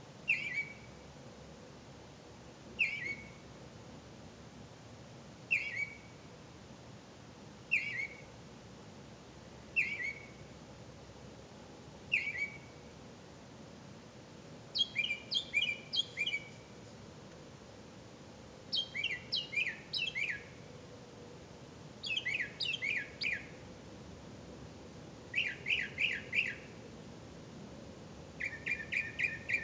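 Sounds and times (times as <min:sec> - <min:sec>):
bird: 0:00.3 - 0:01.0, 0:02.8 - 0:03.4, 0:05.5 - 0:06.2, 0:07.7 - 0:08.3, 0:09.8 - 0:10.5, 0:12.1 - 0:12.8, 0:14.8 - 0:16.7, 0:18.7 - 0:20.7, 0:22.0 - 0:23.6, 0:25.3 - 0:26.8, 0:28.4 - 0:29.6.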